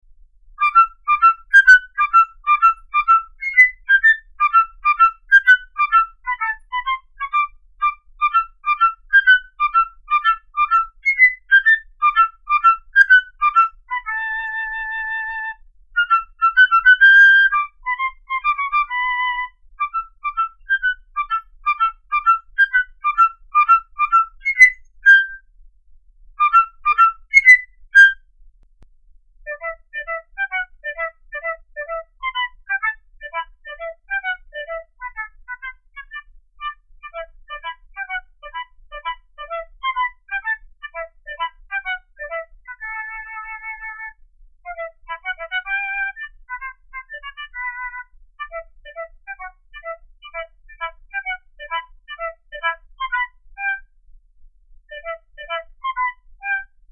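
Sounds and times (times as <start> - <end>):
flute sound test: 0.6 - 25.6, 26.4 - 28.3, 29.4 - 54.0, 54.9 - 56.9.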